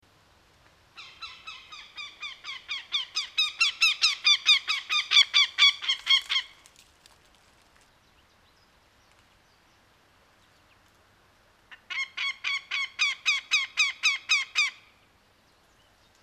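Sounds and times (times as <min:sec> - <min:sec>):
Northern goshawk calling in harsh cackling kek notes: 0:01.0 - 0:06.5, 0:11.7 - 0:14.9.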